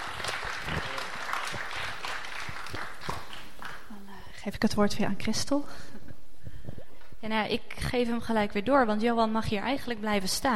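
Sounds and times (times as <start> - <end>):
crowd clapping at a church gathering honoring a couple: 0.0 - 4.0
speech: 4.4 - 6.0, 7.2 - 10.5.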